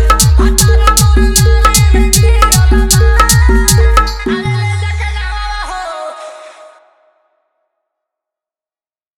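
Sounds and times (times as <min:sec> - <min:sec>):
Bhojpuri DJ remix song with vibration bass: 0:00.0 - 0:06.0.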